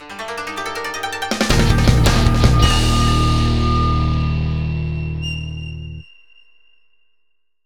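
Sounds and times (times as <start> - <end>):
victory background music: 1.3 - 5.3.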